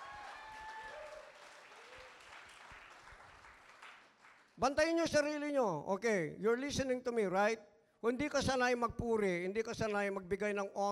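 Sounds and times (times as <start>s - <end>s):
congregation applause during a church service: 0.0s - 4.8s
speech: 4.6s - 10.9s.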